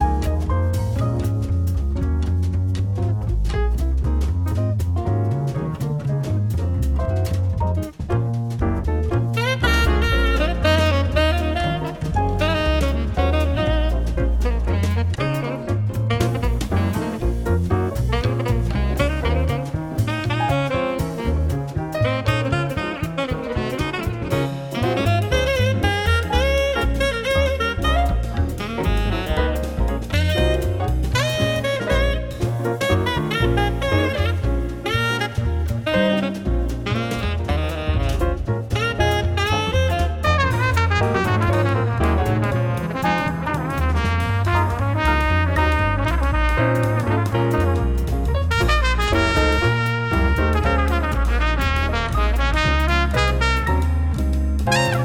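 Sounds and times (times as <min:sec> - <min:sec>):
music for reading: 0:00.0 - 0:55.0.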